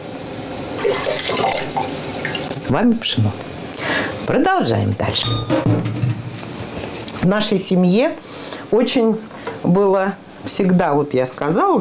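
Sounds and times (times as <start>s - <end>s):
boiling water poured into a cooking pot with meat: 0.8s - 2.7s
speech: 2.7s - 3.5s, 4.3s - 6.2s, 7.2s - 11.8s.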